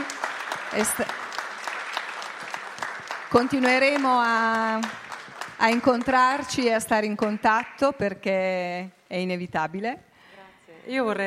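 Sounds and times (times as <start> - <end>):
audience applause: 0.0 - 6.6
speech: 0.7 - 1.2, 3.3 - 5.0, 5.6 - 10.1, 10.8 - 11.2.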